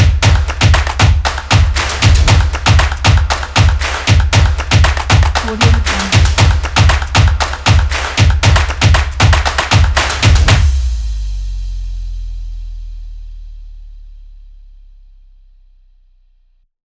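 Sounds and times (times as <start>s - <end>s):
clap: 0.0s - 11.0s.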